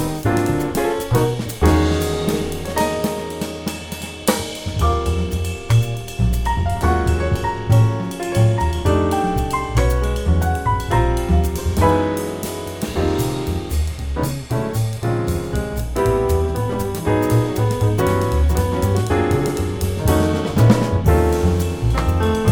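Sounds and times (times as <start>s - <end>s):
modern jazz piano play-along in Eb: 0.0s - 22.4s.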